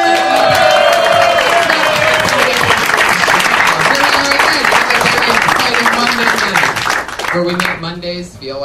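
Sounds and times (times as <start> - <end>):
live comedy club audience whooping: 0.0 - 4.3
live comedy club audience clapping at the Comedy Store: 0.0 - 7.9.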